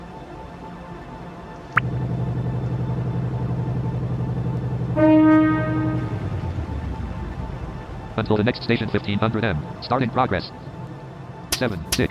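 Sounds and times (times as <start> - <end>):
low engine rumble: 1.5 - 12.0
train horn blast in a train driving video game: 4.2 - 6.6
speech: 8.2 - 10.7, 11.6 - 12.0.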